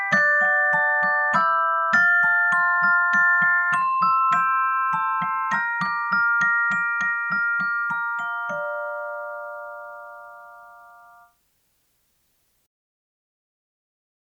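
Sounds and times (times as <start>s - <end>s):
celestette on tape: 0.0s - 11.4s.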